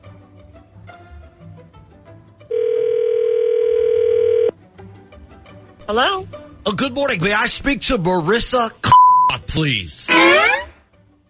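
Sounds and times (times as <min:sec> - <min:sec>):
telephone ringing: 0:02.5 - 0:04.5
speech: 0:05.9 - 0:08.8, 0:09.5 - 0:10.5.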